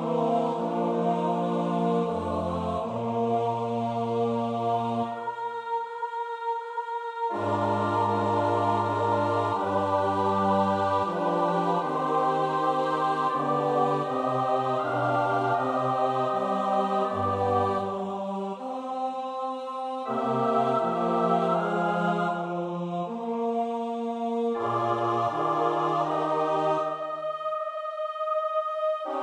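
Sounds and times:
SATB four-part choir singing: 0.0s - 29.2s.

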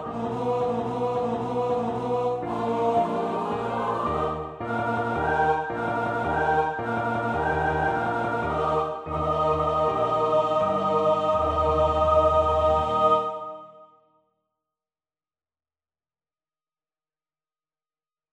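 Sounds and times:
SATB choir part practice singing: 0.0s - 13.9s.

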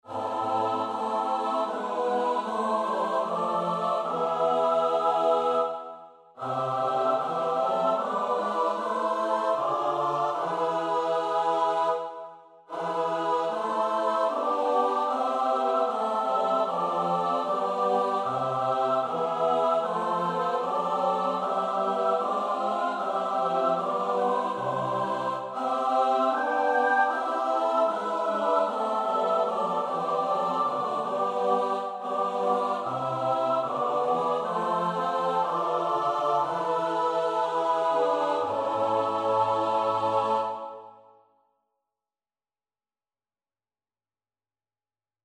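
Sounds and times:
soprano alto tenor bass voices: 0.0s - 5.8s, 6.4s - 12.1s, 12.7s - 40.9s.

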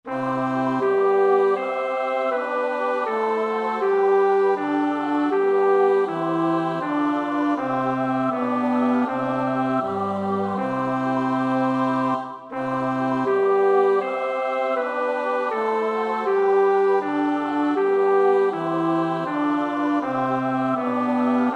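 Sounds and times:
bass: 0.1s - 21.5s.

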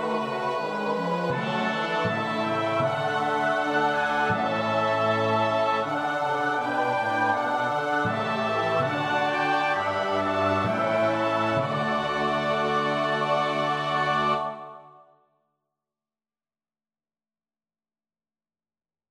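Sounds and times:
soprano alto tenor bass voices: 0.0s - 14.9s.

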